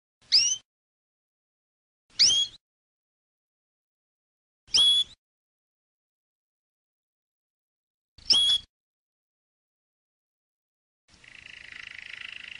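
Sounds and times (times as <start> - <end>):
canary singing: 0.2 - 0.7, 2.1 - 2.6, 4.7 - 5.2, 8.2 - 8.7, 11.1 - 12.5.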